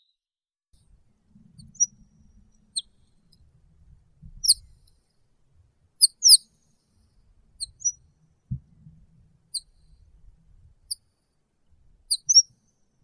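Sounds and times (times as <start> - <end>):
horned lark Eremophila alpestris singing: 0.9 - 4.9, 6.0 - 6.6, 7.3 - 11.0, 11.7 - 13.0.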